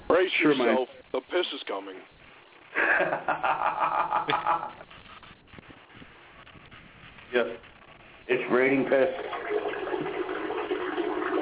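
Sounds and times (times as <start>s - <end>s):
speech: 0.1s - 4.9s, 7.3s - 7.7s, 8.3s - 9.8s
laughter: 2.8s - 4.9s
toilet flushing: 8.4s - 11.4s.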